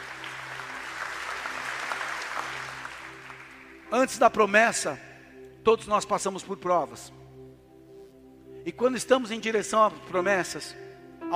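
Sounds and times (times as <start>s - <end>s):
audience applause: 0.0s - 3.8s
speech: 3.9s - 7.2s, 8.6s - 11.3s.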